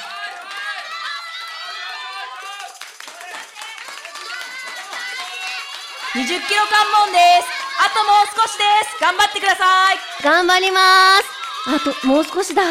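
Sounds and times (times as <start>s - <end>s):
crowd cheering runners at a marathon: 0.0s - 12.7s
speech: 6.2s - 12.7s.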